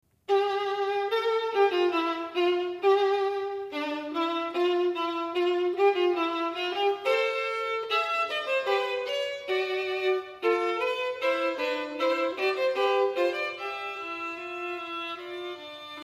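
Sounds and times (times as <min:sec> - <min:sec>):
violin: 0:00.1 - 0:16.0.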